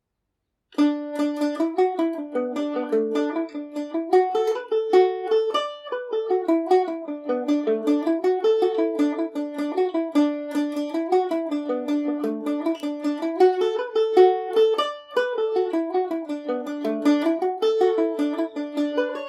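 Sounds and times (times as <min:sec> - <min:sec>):
mandolin in D major: 0:00.7 - 0:19.2.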